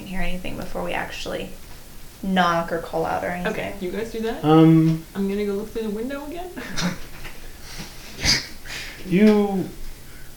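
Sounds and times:
low hiss: 0:00.0 - 0:10.3
speech: 0:00.1 - 0:07.1, 0:09.0 - 0:09.8
breathing heard behind a door: 0:07.4 - 0:09.1, 0:10.0 - 0:10.3.

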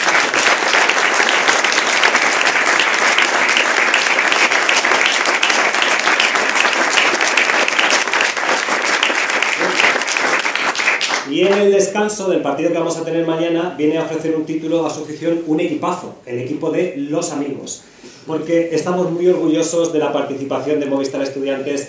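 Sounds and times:
audience applause for a guest: 0:00.0 - 0:11.6
speech: 0:11.4 - 0:21.8.

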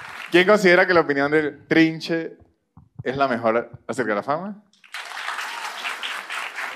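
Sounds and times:
audience applause: 0:00.0 - 0:00.6, 0:04.8 - 0:06.7
speech: 0:00.3 - 0:02.4, 0:03.0 - 0:04.7.

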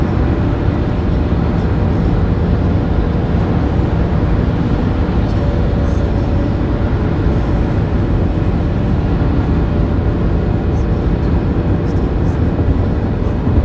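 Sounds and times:
highway driving rumble: 0:00.0 - 0:13.6.

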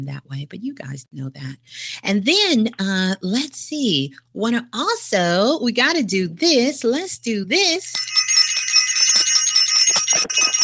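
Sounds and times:
speech: 0:00.0 - 0:08.2
bell ringing: 0:07.9 - 0:10.6.

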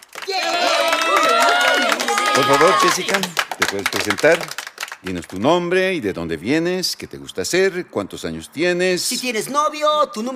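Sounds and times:
class applauding in welcome: 0:00.0 - 0:05.5
speech: 0:02.4 - 0:10.3.

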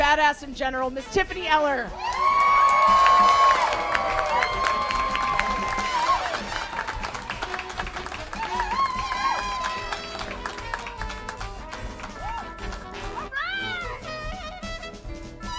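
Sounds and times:
speech: 0:00.2 - 0:02.2, 0:02.9 - 0:04.2
audience applause: 0:02.0 - 0:13.2.

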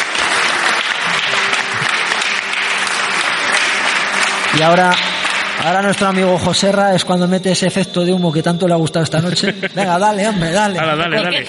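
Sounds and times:
laughter: 0:00.0 - 0:03.6, 0:08.9 - 0:11.4
audience applause: 0:00.0 - 0:07.4
speech: 0:04.6 - 0:11.4.

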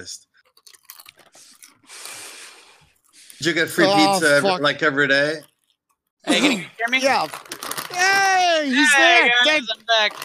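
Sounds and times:
speech: 0:00.0 - 0:00.3, 0:03.4 - 0:05.5, 0:06.2 - 0:10.2
crunchy chewing on chips: 0:00.4 - 0:02.2.

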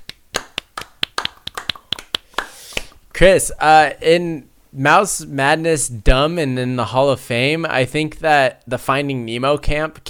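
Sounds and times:
clapping: 0:00.0 - 0:02.9
speech: 0:03.2 - 0:10.0.

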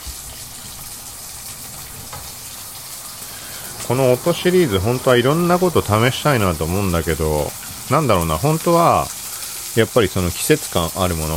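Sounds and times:
pork belly sizzling in a frying pan: 0:00.0 - 0:11.3
speech: 0:03.9 - 0:09.2, 0:09.8 - 0:11.3.

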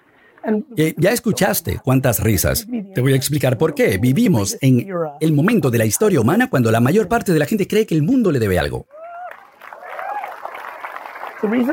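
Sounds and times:
speech: 0:00.4 - 0:09.0, 0:11.4 - 0:11.7
audience applause: 0:09.1 - 0:11.7.

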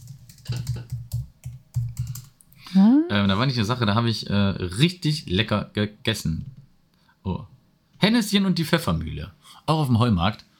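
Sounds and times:
typing on a computer keyboard: 0:00.0 - 0:02.5
speech: 0:02.7 - 0:06.6, 0:07.2 - 0:10.5.

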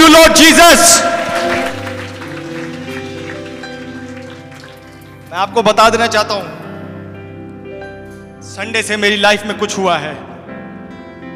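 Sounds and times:
speech: 0:00.4 - 0:01.1, 0:05.4 - 0:06.6, 0:08.5 - 0:10.3
audience clapping in welcome: 0:00.6 - 0:05.6.

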